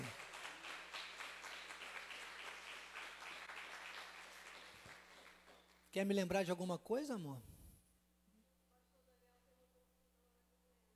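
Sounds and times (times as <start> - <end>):
audience applause: 0.0 - 5.7
speech: 6.0 - 7.5.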